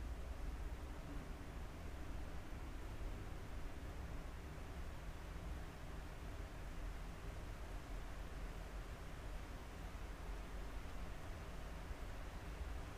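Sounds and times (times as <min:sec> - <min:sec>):
rain: 0:00.0 - 0:12.9.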